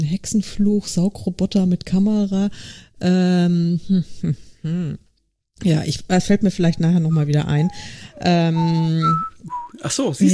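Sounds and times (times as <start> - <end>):
speech: 0.0 - 5.0, 5.6 - 10.3
person whistling and humming imitation hold music: 7.1 - 10.3.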